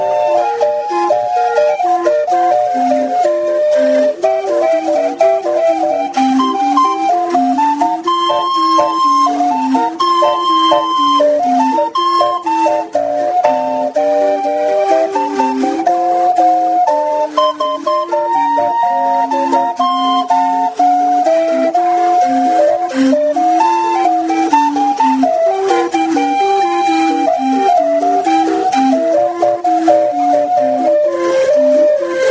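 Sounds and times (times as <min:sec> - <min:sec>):
calliope: 0:00.0 - 0:32.2.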